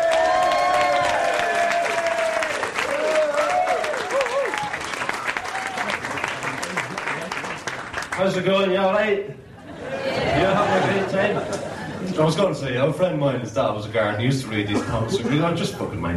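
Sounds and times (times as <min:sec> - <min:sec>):
audience cheering: 0:00.0 - 0:07.8
audience applause welcoming a stand-up comedian: 0:00.0 - 0:08.7
laughter: 0:05.9 - 0:07.5, 0:09.6 - 0:12.4, 0:14.7 - 0:15.9
speech: 0:08.2 - 0:09.5, 0:12.2 - 0:16.1.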